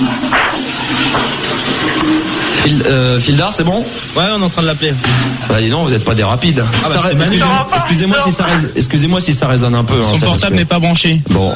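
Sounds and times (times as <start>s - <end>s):
toilet flushing: 0.0s - 11.5s
speech: 2.6s - 11.5s.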